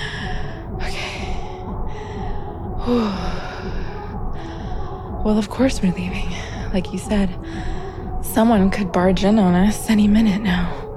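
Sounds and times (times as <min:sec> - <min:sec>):
person panting: 0:00.0 - 0:05.1
speech: 0:02.9 - 0:03.4, 0:05.2 - 0:07.7, 0:08.4 - 0:10.8.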